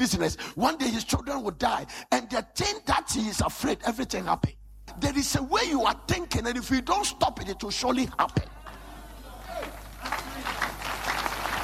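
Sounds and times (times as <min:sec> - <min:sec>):
speech: 0:00.0 - 0:08.6
audience clapping: 0:09.4 - 0:11.6.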